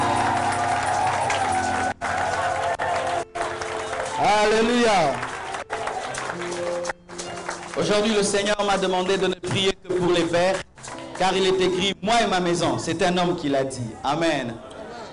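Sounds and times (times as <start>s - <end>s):
church congregation clapping and cheering for the fathers: 0.0s - 11.8s
speech: 4.2s - 5.2s, 7.8s - 14.7s.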